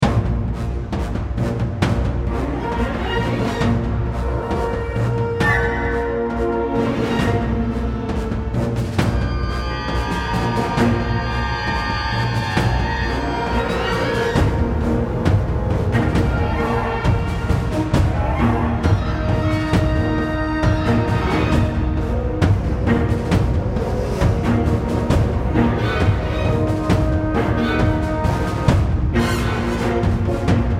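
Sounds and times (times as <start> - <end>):
orchestra: 0.0 - 30.7.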